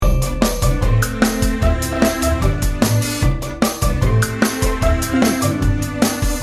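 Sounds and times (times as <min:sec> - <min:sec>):
1950s game show music loop: 0:00.0 - 0:06.4.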